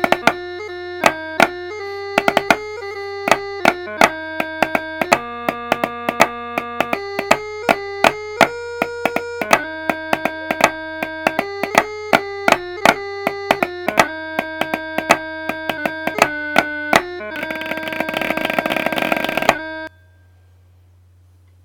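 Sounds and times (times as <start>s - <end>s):
bagpipe chanter: 0.0s - 20.6s
snare drum: 3.3s - 19.6s.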